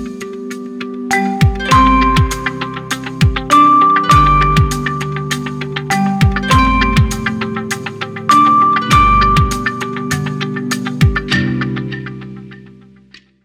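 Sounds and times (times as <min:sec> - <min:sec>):
Oppo A83 phone ringtone: 0:01.1 - 0:12.1.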